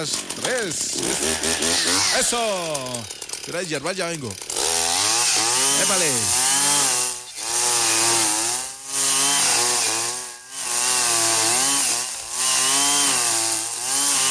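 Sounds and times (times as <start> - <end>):
speech: 0.0 - 4.6, 5.8 - 6.4
motorized brush cutter with copper-spool line cutting grass and weeds on a farm: 0.0 - 14.2.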